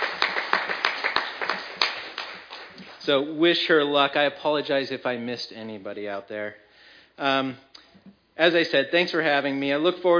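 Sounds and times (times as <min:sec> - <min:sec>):
convention audience applauding: 0:00.0 - 0:03.0
speech: 0:03.1 - 0:06.6, 0:07.2 - 0:10.1.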